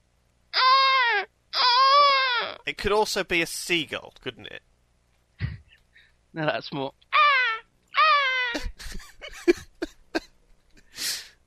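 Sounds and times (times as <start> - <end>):
baby crying: 0.6 - 2.6, 7.1 - 8.8
speech: 2.6 - 4.7, 6.3 - 7.0.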